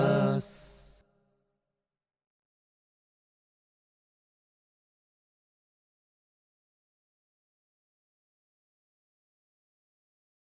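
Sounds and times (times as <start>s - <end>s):
a cappella singing: 0.0s - 1.0s.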